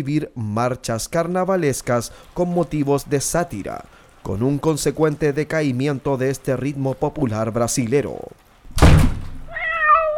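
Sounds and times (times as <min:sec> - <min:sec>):
speech: 0:00.0 - 0:08.4
door slamming shut: 0:08.7 - 0:09.5.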